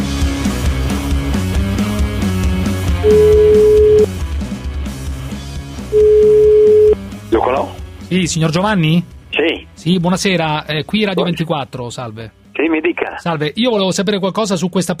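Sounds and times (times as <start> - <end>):
music: 0.0 - 14.9
telephone ringback tone of a call to a radio listener: 3.0 - 4.1, 5.9 - 7.0
speech: 8.1 - 14.9.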